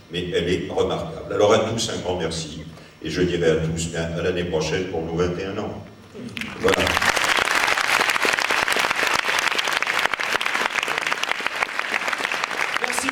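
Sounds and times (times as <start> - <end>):
speech: 0.1 - 6.9
crowd applauding: 6.4 - 13.1.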